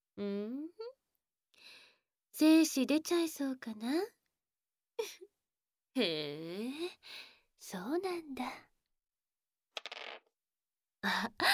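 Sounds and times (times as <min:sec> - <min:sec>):
speech: 0:00.2 - 0:00.7, 0:02.4 - 0:04.2, 0:05.0 - 0:05.3, 0:06.0 - 0:08.7, 0:11.0 - 0:11.5
dice being rolled: 0:09.8 - 0:10.3.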